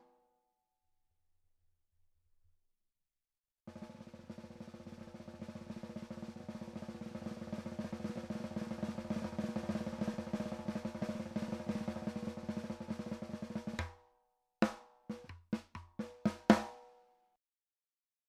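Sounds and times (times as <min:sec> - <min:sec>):
high-tuned Gretsch snare drum: 0:03.7 - 0:14.0, 0:14.6 - 0:17.1.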